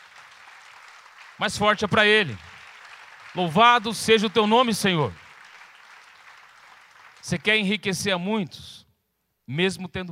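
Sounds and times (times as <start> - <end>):
crowd applauding: 0.0 - 7.9
speech: 1.4 - 2.5, 3.4 - 5.2, 7.3 - 8.8, 9.5 - 10.1.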